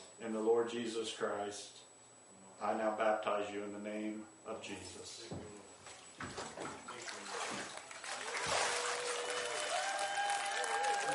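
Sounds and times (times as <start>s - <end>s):
speech: 0.2s - 1.9s, 2.6s - 5.6s, 6.2s - 6.7s
audience applause after baptism: 8.3s - 11.1s.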